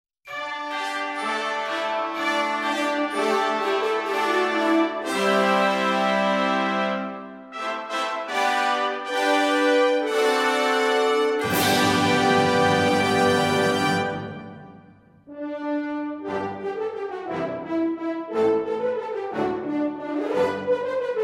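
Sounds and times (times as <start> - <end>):
music: 0.2 - 21.2.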